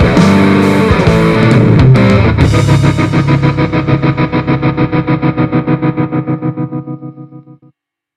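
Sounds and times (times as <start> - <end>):
electric guitar miked inside a guitar amplifier: 0.0 - 7.7.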